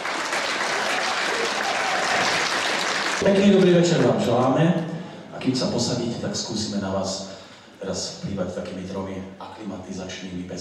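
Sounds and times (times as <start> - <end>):
audience applauding in a spa concert hall in Nimnica: 0.0 - 4.2
speech: 3.2 - 10.6.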